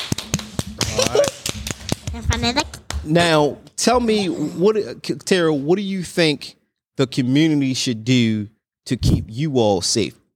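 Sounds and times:
hand clapping: 0.0 - 3.4
speech: 2.2 - 10.2.

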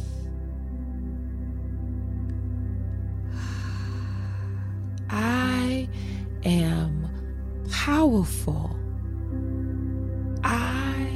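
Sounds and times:
steady low tonal background: 0.0 - 11.1
deep breath in during a spoken affirmation exercise: 3.3 - 4.9
speech: 8.1 - 8.7.

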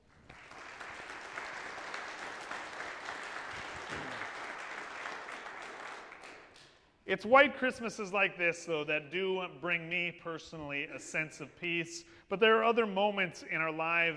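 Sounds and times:
audience applause: 0.0 - 6.6
speech: 7.1 - 14.1.

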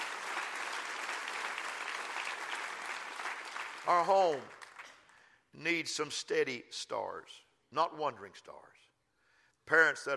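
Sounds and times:
audience clapping hands: 0.0 - 5.3
speech: 3.9 - 4.6, 5.6 - 8.9, 9.7 - 10.1.

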